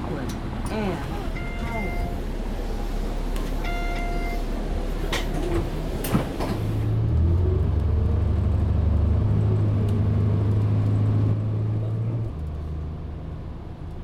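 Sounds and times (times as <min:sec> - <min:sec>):
Line 2 city bus interior rumble heading to Mitchell International Airport: 0:00.0 - 0:14.0.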